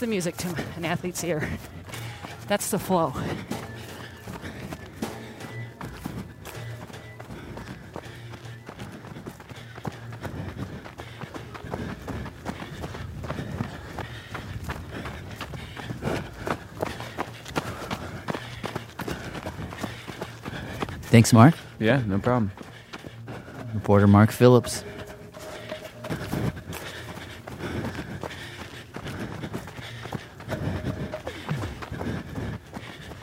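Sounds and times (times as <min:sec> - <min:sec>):
speech: 0:00.0 - 0:03.6, 0:21.1 - 0:22.6, 0:23.8 - 0:24.9
running footsteps: 0:00.0 - 0:33.2
breathing: 0:01.4 - 0:21.8, 0:22.5 - 0:23.8, 0:24.7 - 0:33.2.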